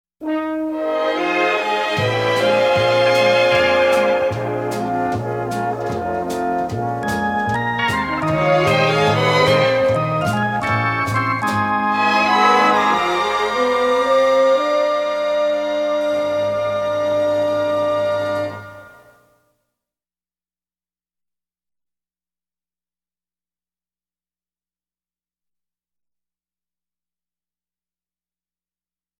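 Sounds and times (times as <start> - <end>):
music bed: 0.2 - 19.6.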